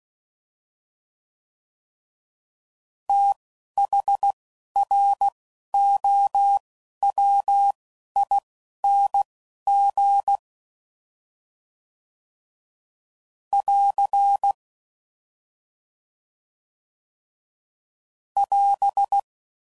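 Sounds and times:
Morse code code groups at 10 WPM: 0:03.1 - 0:10.4, 0:13.6 - 0:14.6, 0:18.4 - 0:19.2.

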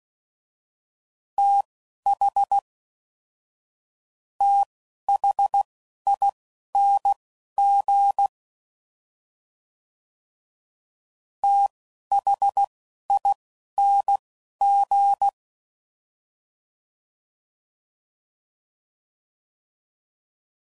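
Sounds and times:
Morse code CW code groups: 0:01.4 - 0:02.6, 0:04.4 - 0:08.3, 0:11.4 - 0:15.4.

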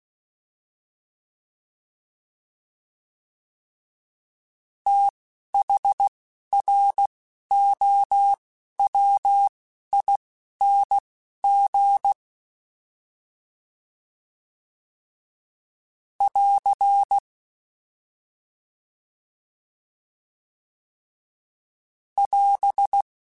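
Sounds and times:
fast CW Morse code groups: 0:04.9 - 0:06.0, 0:06.6 - 0:12.2, 0:16.2 - 0:17.2, 0:22.2 - 0:23.0.

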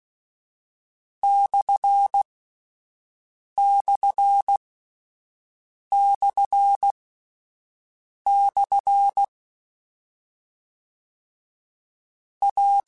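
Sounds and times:
Morse code CW code groups: 0:01.2 - 0:02.2, 0:03.6 - 0:04.6, 0:05.9 - 0:06.9, 0:08.3 - 0:09.3, 0:12.4 - 0:12.8.

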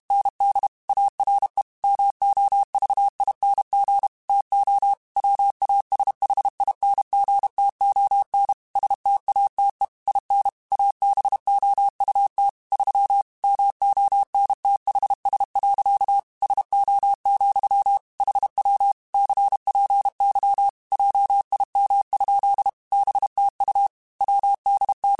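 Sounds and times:
Morse code CW code groups over ham radio: 0:00.1 - 0:25.1.

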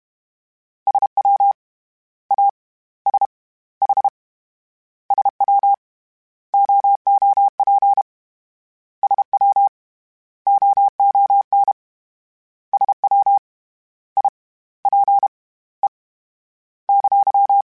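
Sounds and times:
Morse code CW code groups: 0:00.9 - 0:01.5, 0:02.3 - 0:03.3, 0:03.8 - 0:04.1, 0:05.1 - 0:05.8, 0:06.6 - 0:08.1, 0:09.0 - 0:09.7, 0:10.5 - 0:11.8, 0:12.8 - 0:13.4, 0:14.2 - 0:15.3, 0:16.9 - 0:17.6.

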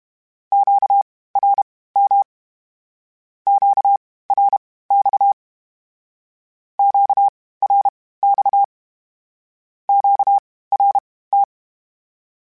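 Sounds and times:
Morse code Q calls in CW code groups: 0:00.5 - 0:02.3, 0:03.5 - 0:05.4, 0:06.8 - 0:08.7, 0:09.9 - 0:11.5.

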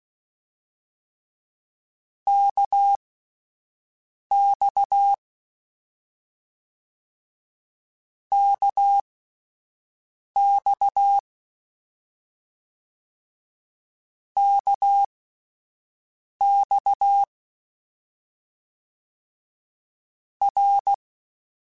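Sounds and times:
CW Morse code groups in mixed short runs: 0:02.3 - 0:03.0, 0:04.3 - 0:05.2, 0:08.4 - 0:09.0, 0:10.4 - 0:11.2, 0:14.4 - 0:15.1, 0:16.4 - 0:17.3, 0:20.5 - 0:21.0.

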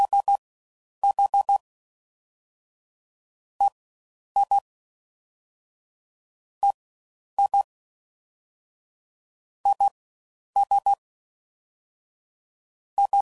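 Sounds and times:
CW Morse code groups of dits at 10 WPM: 0:00.0 - 0:00.4, 0:01.0 - 0:01.6, 0:04.4 - 0:04.6, 0:07.4 - 0:07.7, 0:09.7 - 0:09.9, 0:13.0 - 0:13.1.

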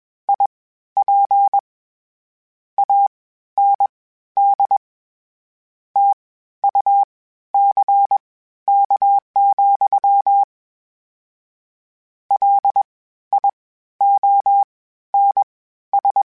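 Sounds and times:
Morse code beeps: 0:00.3 - 0:01.6, 0:02.8 - 0:04.8, 0:06.0 - 0:10.5, 0:12.4 - 0:16.3.

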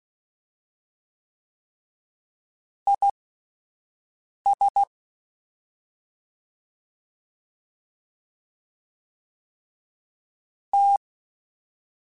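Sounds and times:
fast CW Morse code groups: 0:04.5 - 0:04.9, 0:10.8 - 0:11.0.

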